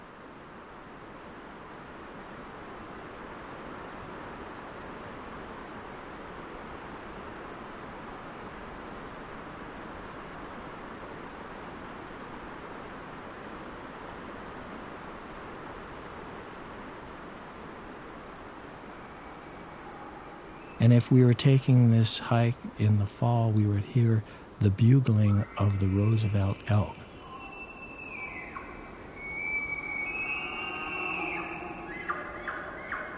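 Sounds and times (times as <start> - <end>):
distant Ho River echoing across a valley: 15.1 - 33.1
speech: 20.8 - 27.1.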